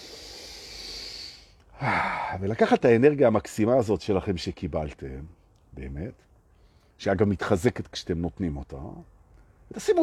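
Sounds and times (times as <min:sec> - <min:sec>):
people breathing in deeply together through the nose: 0:00.0 - 0:02.4, 0:06.5 - 0:07.0
speech: 0:01.8 - 0:06.3, 0:07.0 - 0:09.1, 0:09.7 - 0:10.0.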